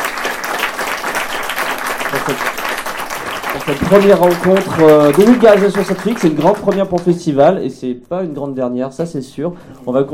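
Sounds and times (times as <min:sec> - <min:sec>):
audience applause: 0:00.0 - 0:07.0
speech: 0:02.3 - 0:02.5, 0:03.7 - 0:10.1.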